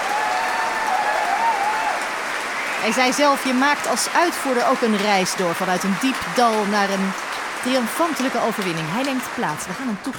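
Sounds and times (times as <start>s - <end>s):
people shouting bravo: 0.0s - 2.0s
speech: 2.8s - 10.1s.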